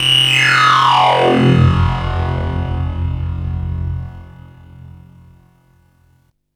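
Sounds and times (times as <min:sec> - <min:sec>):
drum and bass effect: 0:00.0 - 0:05.5.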